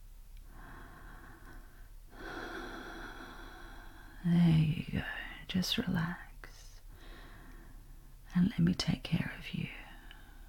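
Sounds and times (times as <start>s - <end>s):
slow deep breathing: 0.4s - 4.3s, 6.8s - 8.2s, 9.9s - 10.4s
speech: 4.2s - 6.3s, 8.4s - 9.8s.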